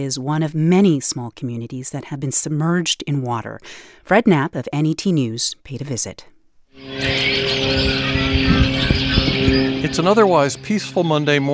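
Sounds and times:
speech: 0:00.0 - 0:09.0, 0:09.8 - 0:11.5
small plane passing overhead: 0:06.8 - 0:11.4
birds chirping: 0:06.8 - 0:11.5.

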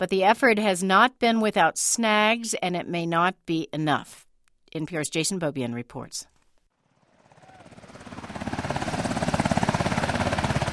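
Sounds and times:
speech: 0:00.0 - 0:06.3
military helicopters flying overhead: 0:06.8 - 0:10.7.

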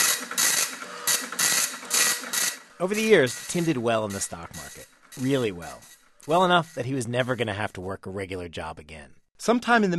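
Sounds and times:
old dot matrix printer connected to an old computer running: 0:00.0 - 0:07.6
speech: 0:02.8 - 0:09.9.

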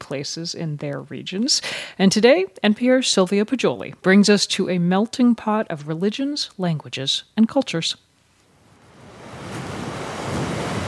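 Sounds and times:
speech: 0:00.1 - 0:08.1
sea waves lapping: 0:08.7 - 0:10.8.

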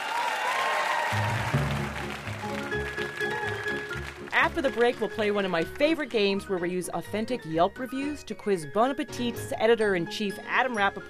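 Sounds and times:
audience applause: 0:00.0 - 0:06.0
speech: 0:04.4 - 0:11.0.

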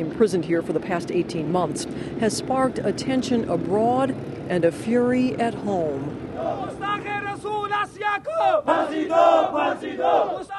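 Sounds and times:
speech: 0:00.0 - 0:10.5
small crowd of black-bearded men chanting in Rawalpindi: 0:06.3 - 0:10.5.

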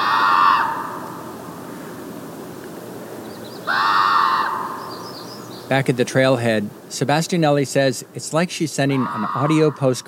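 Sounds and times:
common raven calls echoing over a salt marsh: 0:00.0 - 0:02.0, 0:03.4 - 0:05.7, 0:08.8 - 0:10.0
wind across a salt marsh: 0:00.0 - 0:10.0
speech: 0:05.7 - 0:10.0.

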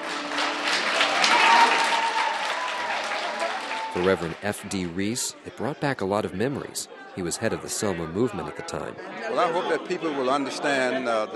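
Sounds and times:
audience at a film screening clapping: 0:00.0 - 0:05.6
scattered audience voices: 0:03.9 - 0:11.3
speech: 0:04.0 - 0:11.3.

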